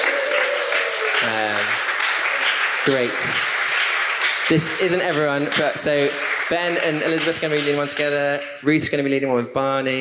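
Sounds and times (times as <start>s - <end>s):
crowd applause: 0.0s - 8.5s
speech: 1.2s - 1.8s, 2.8s - 3.5s, 4.5s - 9.9s.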